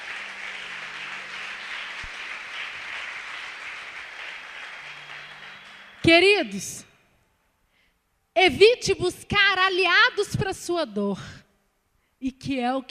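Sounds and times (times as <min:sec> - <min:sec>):
audience applause: 0:00.0 - 0:06.2
speech: 0:06.0 - 0:06.9, 0:08.4 - 0:11.4, 0:12.2 - 0:12.8.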